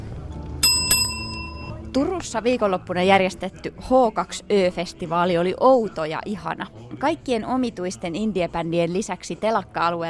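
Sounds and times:
bell ringing: 0:00.6 - 0:01.9
speech: 0:02.0 - 0:10.0.

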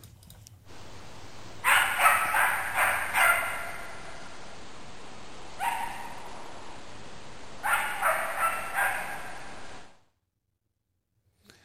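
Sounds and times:
faint steady hiss: 0:00.0 - 0:10.2
wild animal barking, trail camera recording: 0:01.5 - 0:04.5, 0:05.5 - 0:06.4, 0:07.6 - 0:09.9.

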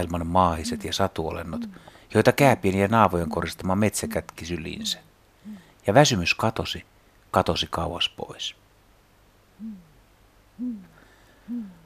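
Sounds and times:
Great grey owl hooting: 0:00.0 - 0:02.2, 0:02.8 - 0:05.8, 0:09.6 - 0:10.0, 0:10.6 - 0:11.8
speech: 0:00.0 - 0:08.6, 0:09.6 - 0:09.8, 0:10.6 - 0:10.9, 0:11.5 - 0:11.8.

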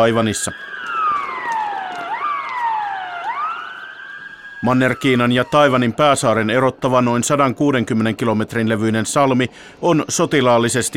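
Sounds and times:
speech: 0:00.0 - 0:00.9, 0:04.6 - 0:10.9
air base alarm siren in southern Taiwan: 0:00.0 - 0:07.4.

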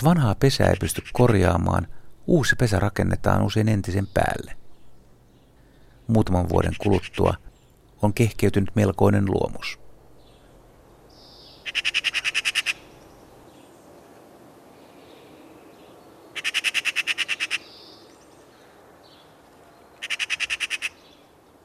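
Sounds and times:
speech: 0:00.0 - 0:04.6, 0:06.1 - 0:09.8, 0:11.7 - 0:12.2
hiss: 0:00.0 - 0:21.6
magpie calls: 0:06.4 - 0:07.4, 0:11.6 - 0:12.9, 0:16.4 - 0:17.7, 0:20.0 - 0:21.0.

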